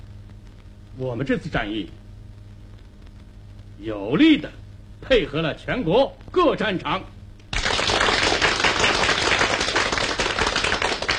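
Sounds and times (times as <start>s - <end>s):
speech: 1.0s - 2.0s, 3.8s - 7.2s
audience applause: 7.5s - 11.1s.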